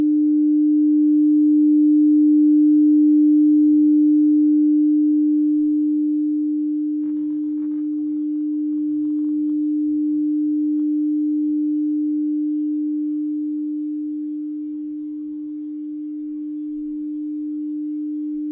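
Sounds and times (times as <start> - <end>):
singing bowl tone with rim circled: 0.0 - 18.5
faint taps and rubbing scrapes: 7.0 - 9.7.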